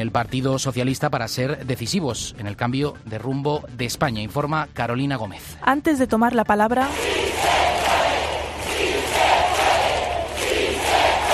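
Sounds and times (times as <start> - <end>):
speech: 0.0 - 7.6
rally crowd chanting a slogan: 6.9 - 11.3.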